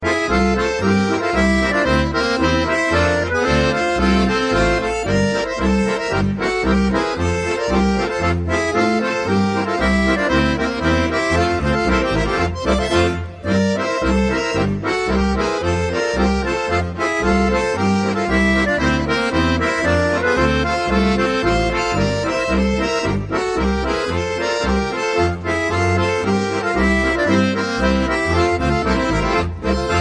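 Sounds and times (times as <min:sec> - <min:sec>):
schottische folk dance music: 0:00.0 - 0:29.9.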